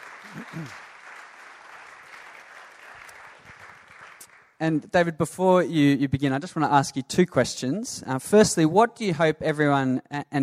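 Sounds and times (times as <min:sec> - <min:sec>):
audience applause: 0:00.0 - 0:04.6
speech: 0:00.3 - 0:00.9, 0:04.6 - 0:10.4.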